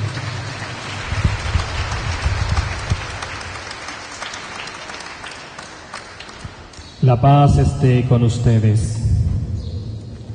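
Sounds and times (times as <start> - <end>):
church congregation applause at a Sunday Mass: 0.0 - 6.8
speech: 7.1 - 9.0.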